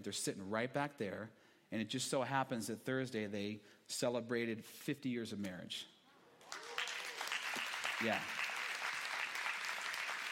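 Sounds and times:
speech: 0:00.0 - 0:05.9, 0:08.0 - 0:08.4
crowd clapping: 0:06.4 - 0:10.3.

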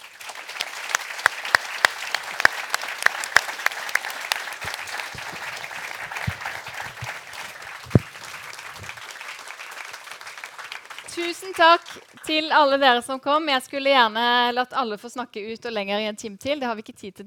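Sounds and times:
audience applause: 0:00.0 - 0:12.3
speech: 0:11.4 - 0:17.2.

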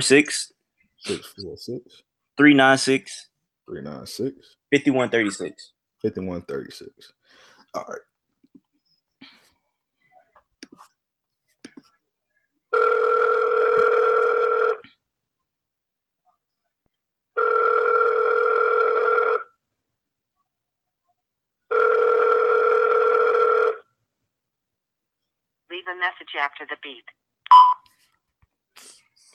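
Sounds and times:
speech: 0:00.0 - 0:08.1, 0:25.8 - 0:27.3
telephone ringing tone: 0:12.7 - 0:14.8, 0:17.4 - 0:19.5, 0:21.7 - 0:23.8.

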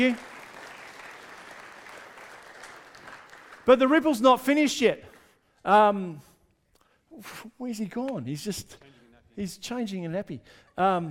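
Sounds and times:
speech: 0:00.0 - 0:00.3, 0:03.7 - 0:06.3, 0:07.2 - 0:11.0
audience applause: 0:00.0 - 0:03.7.

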